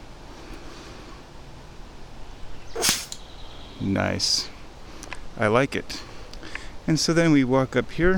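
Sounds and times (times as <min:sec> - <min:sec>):
low steady outdoor hiss: 0:00.0 - 0:08.1
dart hitting a knot on a tree: 0:02.8 - 0:03.2
speech: 0:03.8 - 0:04.5, 0:05.4 - 0:06.1, 0:06.9 - 0:08.1.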